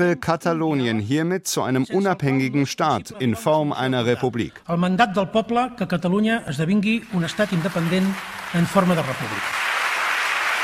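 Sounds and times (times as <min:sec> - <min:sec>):
speech: 0:00.0 - 0:09.7
parliament applause after independence declaration: 0:07.2 - 0:10.6.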